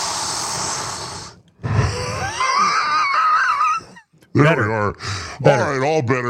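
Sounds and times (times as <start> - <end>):
wheezy breathing at a microphone: 0.0 - 2.9, 5.0 - 5.4
laughter: 1.7 - 4.2
speech: 4.4 - 6.2.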